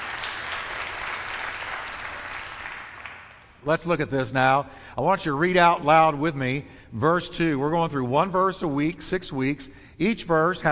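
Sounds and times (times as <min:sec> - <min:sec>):
congregation applauding: 0:00.0 - 0:03.6
speech: 0:03.6 - 0:10.7.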